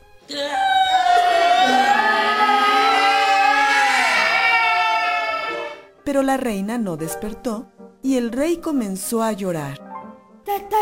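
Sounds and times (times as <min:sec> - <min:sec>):
people shouting together: 0:00.3 - 0:05.9
speech: 0:06.2 - 0:09.8, 0:10.5 - 0:10.8.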